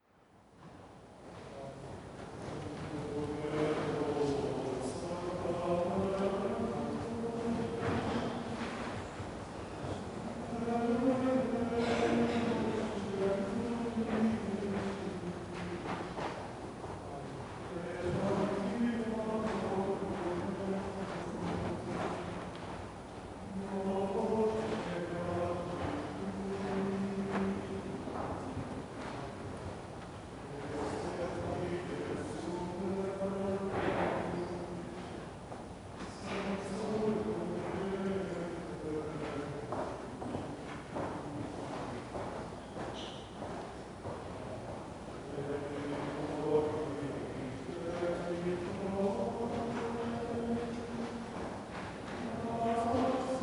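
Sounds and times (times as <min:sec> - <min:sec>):
liturgical chant: 0:00.0 - 0:53.4.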